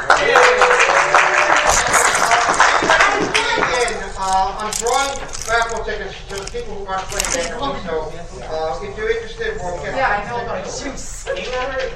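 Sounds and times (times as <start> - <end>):
audience applause: 0.0 - 3.9
speech: 4.6 - 11.9.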